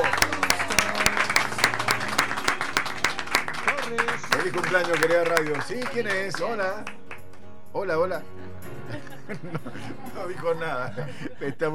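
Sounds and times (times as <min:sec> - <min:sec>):
applause: 0:00.0 - 0:07.4
speech: 0:04.5 - 0:07.0, 0:07.7 - 0:08.5, 0:09.3 - 0:11.7
laughter: 0:08.9 - 0:11.7.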